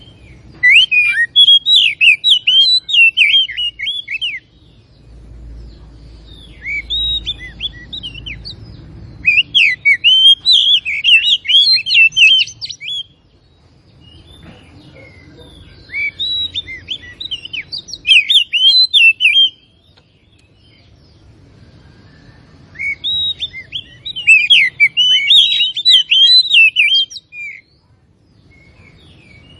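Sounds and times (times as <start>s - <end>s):
Oriental magpie-robin singing: 0.0s - 4.6s, 6.3s - 13.2s, 14.1s - 20.9s, 21.7s - 27.7s.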